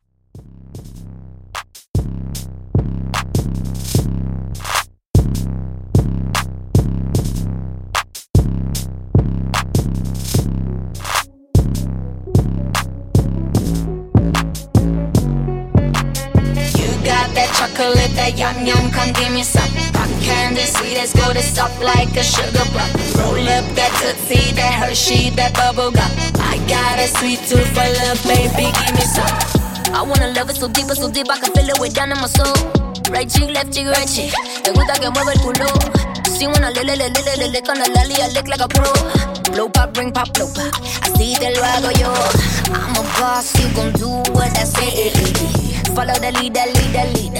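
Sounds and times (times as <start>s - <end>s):
Latin trap bass beat at 150 BPM: 0.4s - 47.3s.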